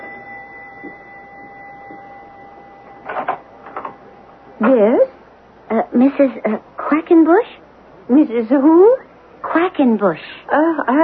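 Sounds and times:
doorbell buzzing: 0.0 - 4.5
faint steady electrical hum: 0.0 - 11.0
speech: 4.6 - 5.1, 6.0 - 9.0, 9.6 - 11.0.

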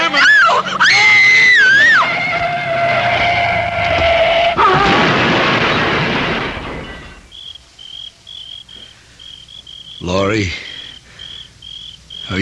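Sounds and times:
shrill wavering screech: 0.2 - 5.0
car crashing into a tree: 1.4 - 7.4.

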